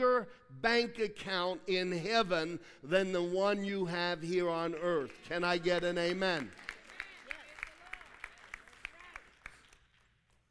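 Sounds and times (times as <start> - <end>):
speech: 0.0 - 6.7
audience clapping: 4.4 - 10.4.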